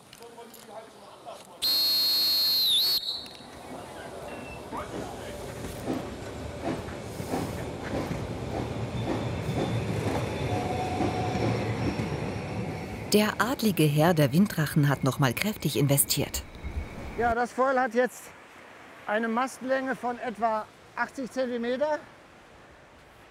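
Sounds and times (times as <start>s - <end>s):
narrow-gauge steam train whistle: 1.6s - 3.5s
narrow-gauge steam train rumbling with chugging and clatter: 3.7s - 16.3s
speech: 13.1s - 16.5s, 17.2s - 18.4s, 19.1s - 22.1s.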